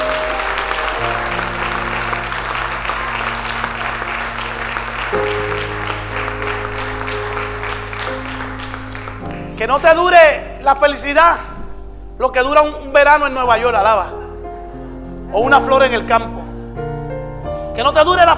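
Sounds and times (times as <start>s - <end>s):
audience applause: 0.0s - 9.9s
speech: 9.6s - 11.5s, 12.2s - 14.2s, 15.3s - 16.4s, 17.8s - 18.3s.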